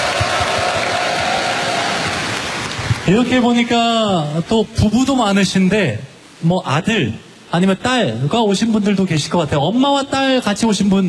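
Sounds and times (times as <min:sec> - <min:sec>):
audience applause: 0:00.0 - 0:03.6
speech: 0:03.1 - 0:11.0.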